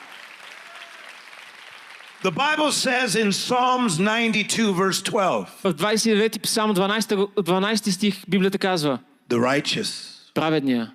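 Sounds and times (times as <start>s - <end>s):
audience clapping hands: 0.0s - 3.3s
speech: 2.2s - 10.9s.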